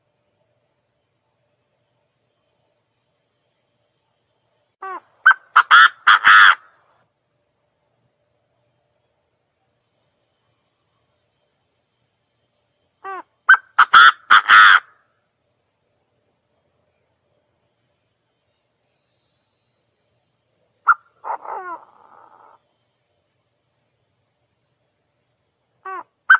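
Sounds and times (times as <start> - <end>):
partridge calling: 4.8 - 6.7, 13.0 - 15.0, 20.8 - 22.6, 25.8 - 26.3.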